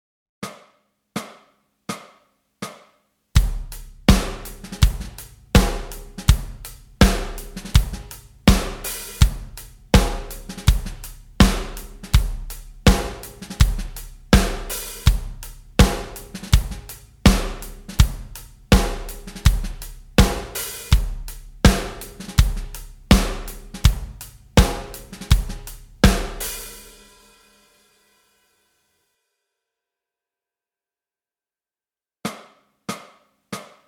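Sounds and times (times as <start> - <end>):
backing track: 3.4 - 26.9.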